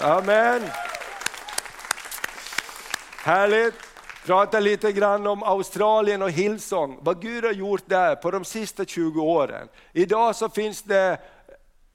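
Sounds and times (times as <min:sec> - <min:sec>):
speech: 0:00.0 - 0:00.9, 0:03.2 - 0:11.4
audience applause: 0:00.0 - 0:04.3.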